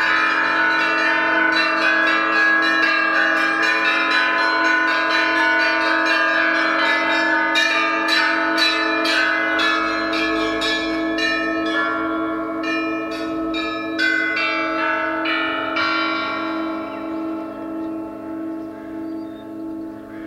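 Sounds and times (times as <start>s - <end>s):
church bells ringing in Karakol, Kyrgyzstan: 0.0s - 20.2s.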